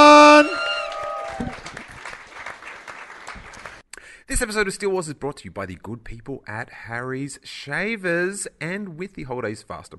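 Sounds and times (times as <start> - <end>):
audience applause: 0.3 - 3.8
speech: 4.3 - 9.9.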